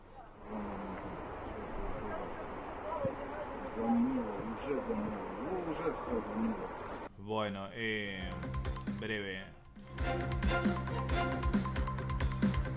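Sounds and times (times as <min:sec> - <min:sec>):
tsunami water flooding the coast: 0:00.4 - 0:07.0
speech: 0:03.8 - 0:11.8.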